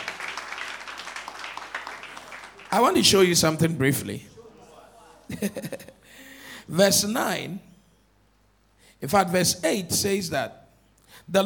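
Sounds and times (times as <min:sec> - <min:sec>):
crowd clapping: 0:00.0 - 0:03.5
speech: 0:02.7 - 0:04.3, 0:05.3 - 0:05.9, 0:06.7 - 0:07.7, 0:09.0 - 0:11.4
laughter: 0:04.4 - 0:06.0.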